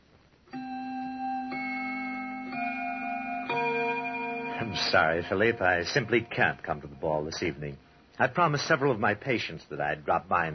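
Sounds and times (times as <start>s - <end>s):
grandfather clock chiming: 0.6s - 7.8s
speech: 4.7s - 10.5s.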